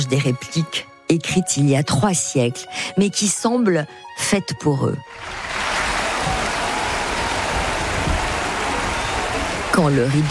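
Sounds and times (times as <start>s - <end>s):
speech: 0.0s - 5.6s, 9.8s - 10.2s
theatre audience applauding: 5.1s - 10.2s.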